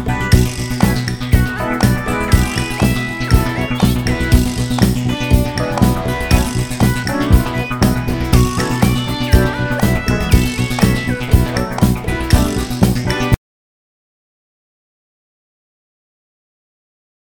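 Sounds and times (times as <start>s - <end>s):
funky drum flams: 0.0s - 13.4s.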